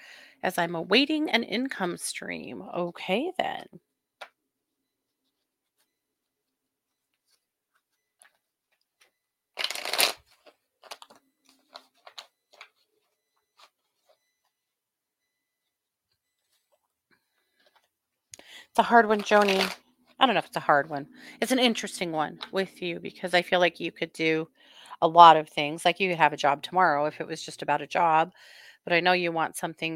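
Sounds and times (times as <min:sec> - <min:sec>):
speech: 0:00.4 - 0:03.9, 0:18.8 - 0:29.9
tarot cards being riffled: 0:09.6 - 0:12.7, 0:19.2 - 0:19.8.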